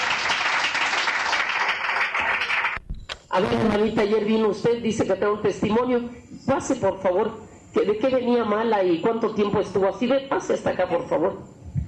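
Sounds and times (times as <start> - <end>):
audience applauding: 0.0 - 2.8
speech: 3.4 - 11.6.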